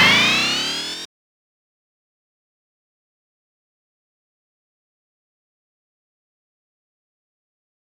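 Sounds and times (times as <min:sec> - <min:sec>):
alarm: 0:00.0 - 0:01.1.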